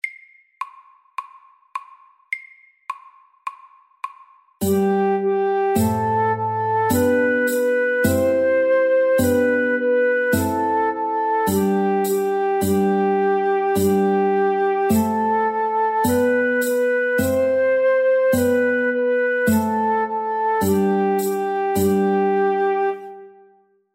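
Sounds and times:
Norwegian folk tune: 0:04.6 - 0:23.6.

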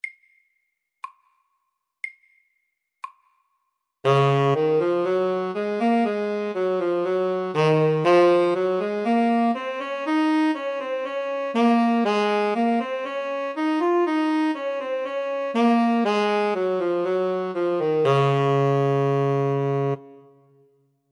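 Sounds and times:
slow etude: 0:04.1 - 0:20.7.

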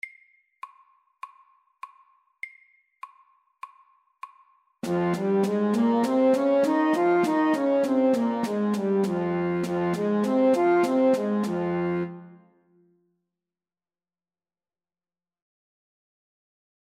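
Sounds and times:
F natural minor music played forte: 0:04.8 - 0:12.6.

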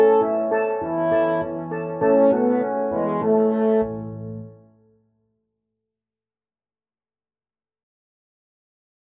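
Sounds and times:
steel drum band playing: 0:00.0 - 0:03.3.

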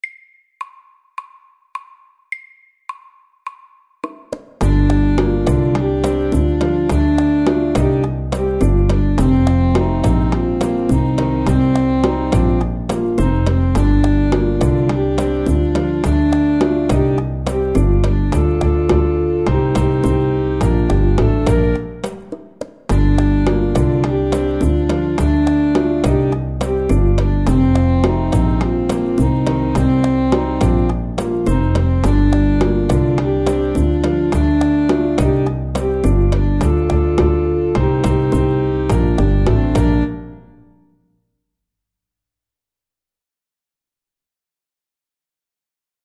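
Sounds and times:
driving saxophones: 0:04.6 - 0:08.1, 0:09.0 - 0:22.0, 0:22.9 - 0:40.4.

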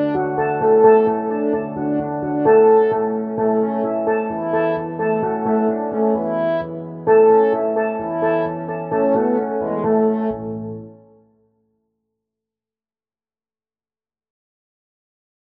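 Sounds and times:
steel drum band playing: 0:00.2 - 0:06.0, 0:07.1 - 0:10.1.

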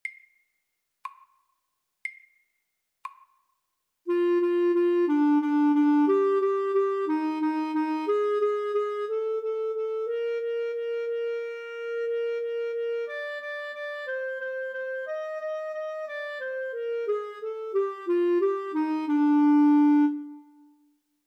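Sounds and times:
slow etude: 0:04.1 - 0:20.8.

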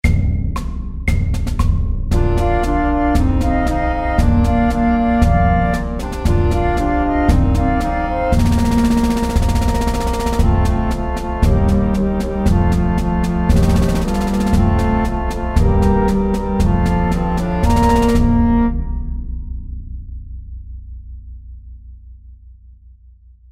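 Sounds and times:
fast march music: 0:00.0 - 0:19.0.

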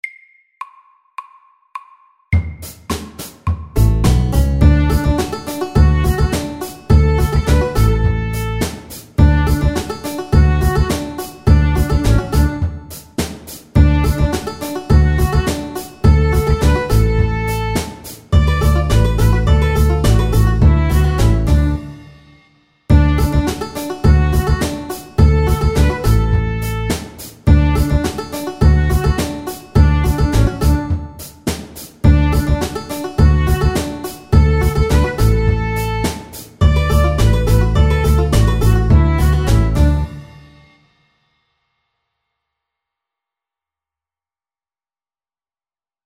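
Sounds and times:
bluegrass music: 0:03.8 - 0:13.0, 0:13.8 - 0:22.0, 0:22.9 - 0:31.3, 0:32.0 - 0:40.4.

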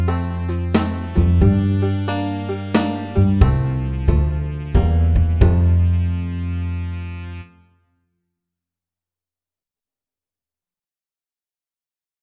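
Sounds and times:
country shuffle music: 0:00.0 - 0:06.9.

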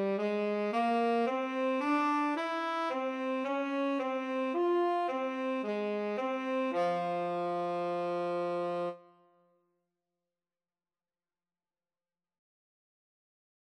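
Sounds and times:
slow etude in G minor: 0:00.0 - 0:09.0.

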